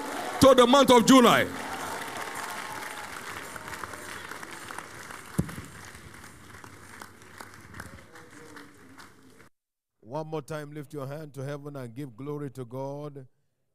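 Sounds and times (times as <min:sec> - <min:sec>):
audience clapping in praise: 0:00.0 - 0:09.5
speech: 0:00.4 - 0:01.6, 0:10.2 - 0:13.4.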